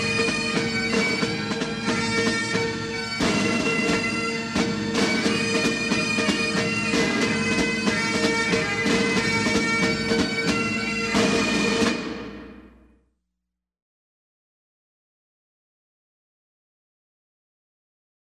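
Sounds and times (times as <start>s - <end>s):
pipe and drum music: 0.0s - 13.0s.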